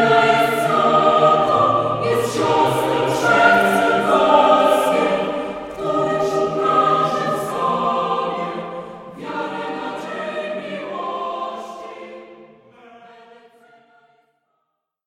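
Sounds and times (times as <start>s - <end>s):
a cappella singing: 0.0s - 14.3s.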